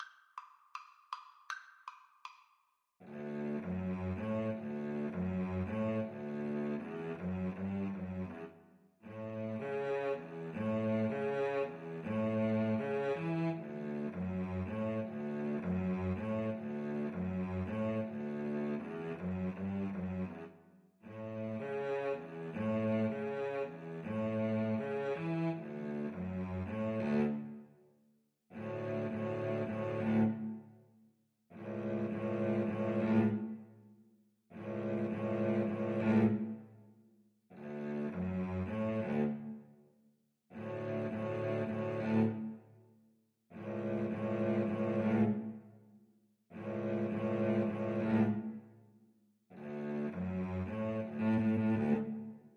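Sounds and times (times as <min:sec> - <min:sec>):
cello duet: 0:03.0 - 0:27.7, 0:28.5 - 0:30.7, 0:31.5 - 0:33.7, 0:34.5 - 0:36.8, 0:37.5 - 0:39.8, 0:40.5 - 0:42.7, 0:43.5 - 0:45.7, 0:46.5 - 0:48.7, 0:49.5 - 0:52.5.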